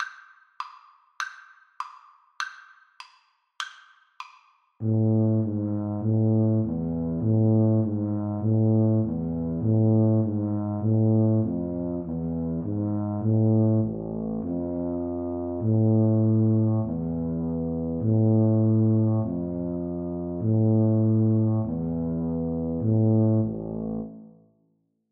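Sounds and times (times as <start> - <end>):
tuba duet: 4.8 - 24.4.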